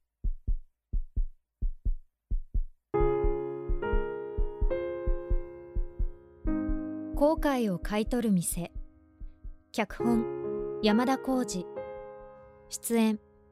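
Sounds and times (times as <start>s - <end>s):
heartbeat: 0.0s - 9.7s
speech: 7.2s - 8.8s, 9.8s - 11.7s, 12.7s - 13.4s.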